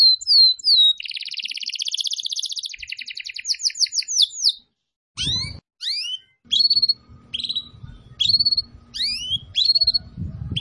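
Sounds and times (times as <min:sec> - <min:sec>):
Atlantic canary chirps and whistled notes: 0:00.0 - 0:10.5
low hum: 0:06.5 - 0:10.5.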